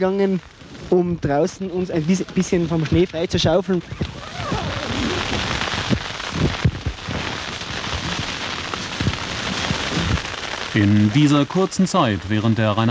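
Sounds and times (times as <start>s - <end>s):
speech: 0.0s - 4.6s, 10.8s - 12.8s
fierce storm wind at about 7000 metres altitude around a tent in the snow: 0.6s - 12.8s
low thumps: 2.2s - 10.8s.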